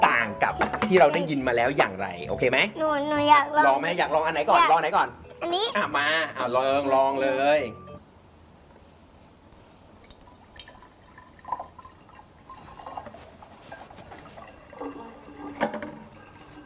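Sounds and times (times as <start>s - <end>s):
speech: 0.4s - 7.8s
water pouring into a container: 9.2s - 16.6s.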